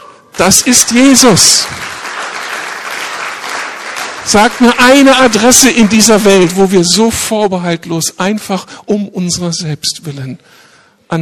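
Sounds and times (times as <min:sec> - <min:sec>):
speech: 0:00.4 - 0:02.1, 0:04.2 - 0:11.2
audience applause: 0:00.4 - 0:06.6.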